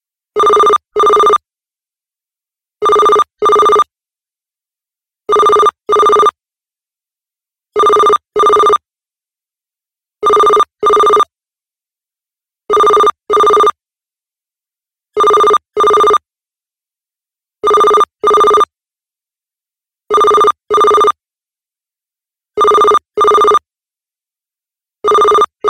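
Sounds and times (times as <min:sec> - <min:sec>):
standard phone ringtone: 0:00.4 - 0:01.4, 0:02.8 - 0:03.9, 0:05.3 - 0:06.4, 0:07.8 - 0:08.8, 0:10.2 - 0:11.3, 0:12.7 - 0:13.8, 0:15.2 - 0:16.2, 0:17.6 - 0:18.7, 0:20.1 - 0:21.2, 0:22.6 - 0:23.6, 0:25.0 - 0:25.6.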